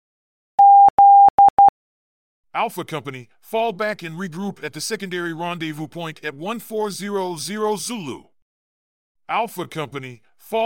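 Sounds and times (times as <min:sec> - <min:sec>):
Morse code beeps: 0:00.6 - 0:01.7
speech: 0:02.6 - 0:08.3, 0:09.3 - 0:10.6.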